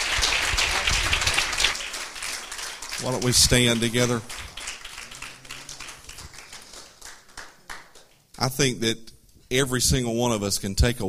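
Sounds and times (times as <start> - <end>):
audience clapping hands: 0.0 - 8.4
speech: 3.0 - 4.5, 8.4 - 11.0.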